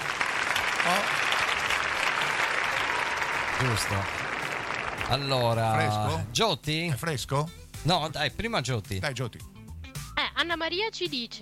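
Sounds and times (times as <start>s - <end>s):
applause: 0.0s - 5.9s
speech: 3.6s - 4.2s, 5.1s - 9.5s, 10.4s - 11.4s.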